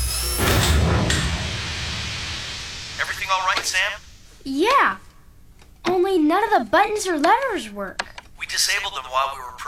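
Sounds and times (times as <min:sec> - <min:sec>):
door closing: 0:00.1 - 0:01.6
speech: 0:03.3 - 0:05.0, 0:06.0 - 0:09.6.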